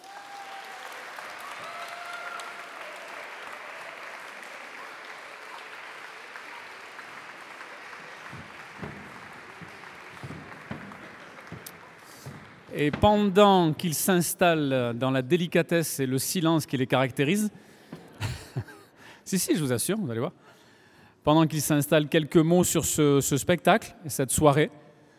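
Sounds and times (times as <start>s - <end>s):
sustained audience applause: 0.0s - 13.4s
speech: 12.8s - 17.7s, 19.3s - 20.5s, 21.2s - 24.8s.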